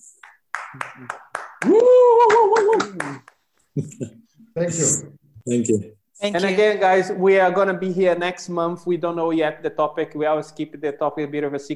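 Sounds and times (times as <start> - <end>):
scattered hand claps: 0.0 - 3.6
speech: 0.7 - 11.7
whooping cheer: 1.6 - 3.2.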